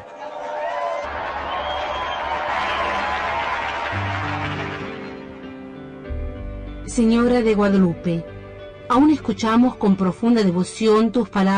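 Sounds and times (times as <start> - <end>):
audience applause: 0.0 - 6.0
speech: 7.0 - 11.5.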